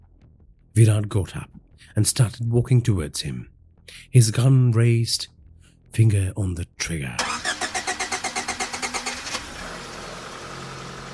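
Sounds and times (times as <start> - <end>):
speech: 0.8 - 7.4
SUV engine cranking, starting and idling: 7.2 - 11.1.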